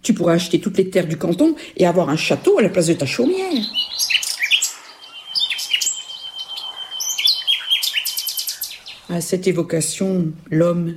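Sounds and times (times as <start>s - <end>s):
speech: 0.0s - 4.2s, 9.1s - 10.9s
nightingale singing: 1.0s - 9.5s.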